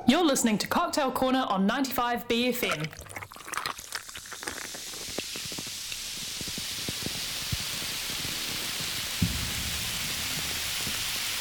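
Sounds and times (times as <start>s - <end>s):
speech: 0.1s - 3.0s
carbonated drink fizzing: 2.6s - 11.3s.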